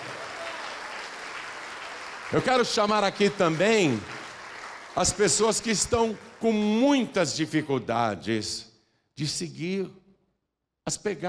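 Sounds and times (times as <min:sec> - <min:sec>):
audience applauding: 0:00.0 - 0:07.4
speech: 0:02.3 - 0:04.2, 0:05.0 - 0:10.0, 0:10.9 - 0:11.2.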